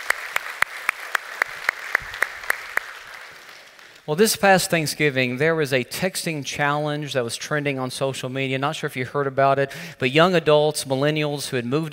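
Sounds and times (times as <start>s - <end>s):
audience clapping in unison to welcome guests to a study session: 0.0s - 4.1s
speech: 4.1s - 11.9s.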